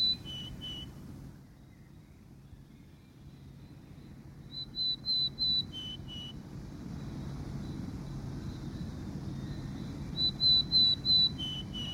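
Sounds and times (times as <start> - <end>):
willow tit song: 0.0 - 0.9, 4.5 - 6.4, 9.4 - 11.9
low wind rumble: 0.0 - 11.9.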